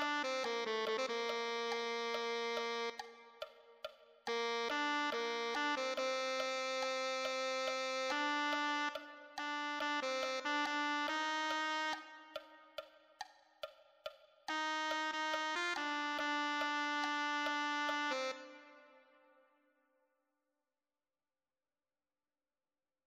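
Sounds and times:
tenor saxophone: 0.0s - 12.8s, 14.5s - 19.3s.

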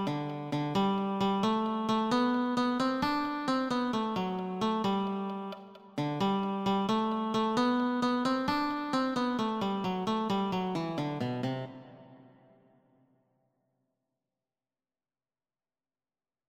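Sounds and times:
guitar: 0.0s - 12.5s.

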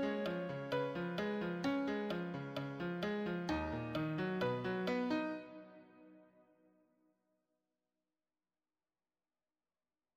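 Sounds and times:
advanced solo piano: 0.0s - 6.5s.

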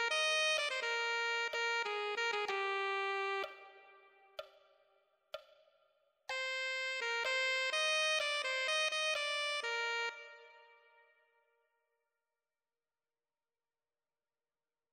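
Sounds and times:
alto saxophone: 0.0s - 4.4s, 6.3s - 11.3s.

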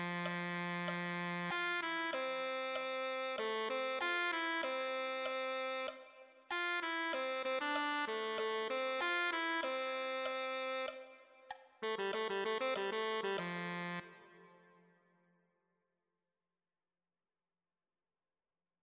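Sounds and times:
tenor saxophone: 0.0s - 15.0s.

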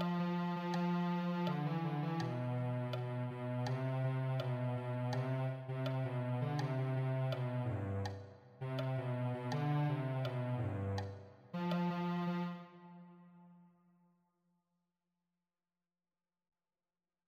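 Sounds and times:
cello: 0.0s - 13.5s.

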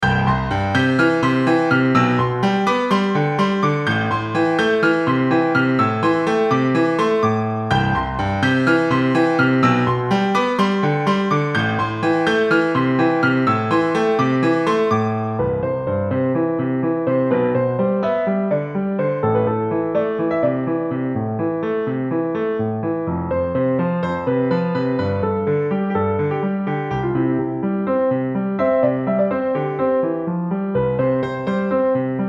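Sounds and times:
advanced solo piano: 0.0s - 32.2s.

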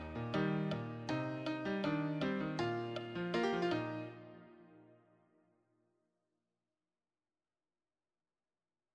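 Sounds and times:
advanced solo piano: 0.0s - 5.2s.

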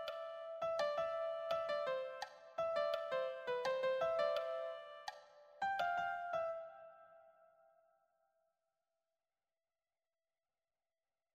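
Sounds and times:
melody: 0.0s - 7.2s.

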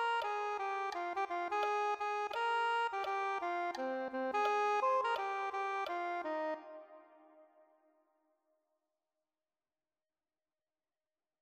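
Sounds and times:
soprano saxophone: 0.0s - 7.5s.

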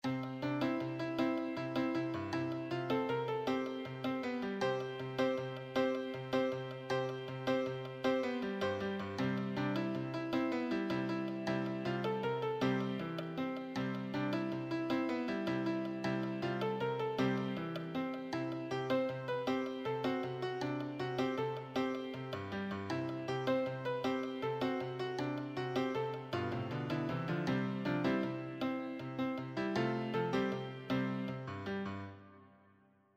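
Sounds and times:
advanced solo piano: 0.0s - 33.1s.

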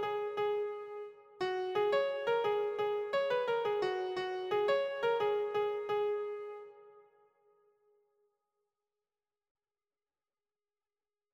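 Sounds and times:
piano: 0.0s - 7.5s.

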